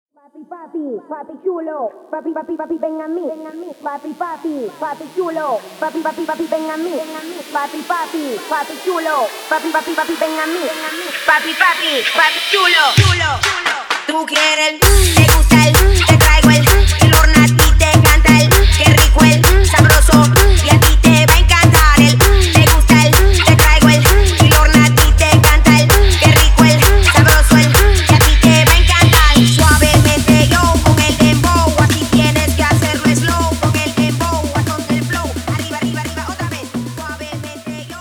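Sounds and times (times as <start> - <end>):
intro outro music: 2.8 - 14.0, 14.8 - 38.0.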